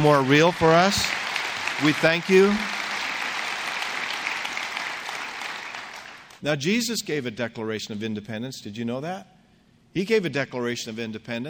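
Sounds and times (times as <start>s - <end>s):
speech: 0.0s - 1.2s, 1.8s - 2.7s, 6.4s - 9.4s, 10.0s - 11.4s
audience applause: 0.0s - 6.4s.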